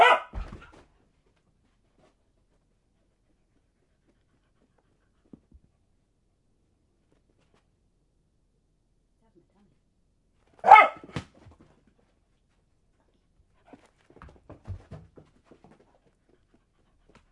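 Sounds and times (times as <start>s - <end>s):
dog barking while playing fetch: 0.0s - 0.6s, 10.6s - 11.2s.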